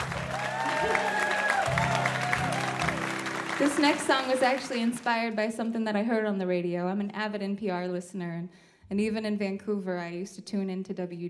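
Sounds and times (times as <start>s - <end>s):
audience applause: 0.0s - 5.5s
speech: 3.6s - 11.2s.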